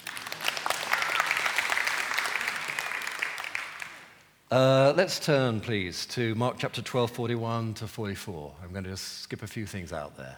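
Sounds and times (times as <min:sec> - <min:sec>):
room full of people clapping: 0:00.0 - 0:04.2
speech: 0:04.5 - 0:10.3.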